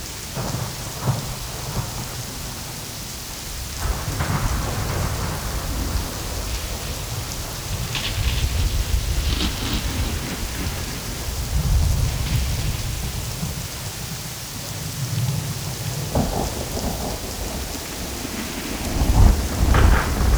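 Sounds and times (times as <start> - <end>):
dark rainy night ambience: 0.0 - 20.3.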